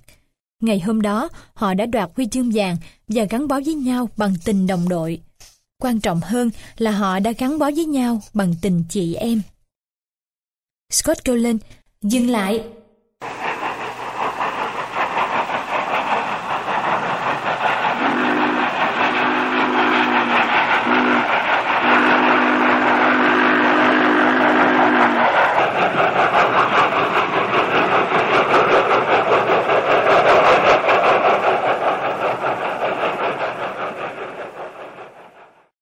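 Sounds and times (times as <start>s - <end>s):
speech: 0.6s - 9.5s, 10.9s - 13.3s
train rolling slowly along the tracks with a clattering roar: 13.2s - 35.8s
sustained low train horn blasts: 20.8s - 25.1s.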